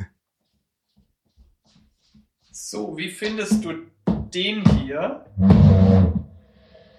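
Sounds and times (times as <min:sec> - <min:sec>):
speech: 0:02.6 - 0:06.1
chair scraping across the floor: 0:05.4 - 0:06.3.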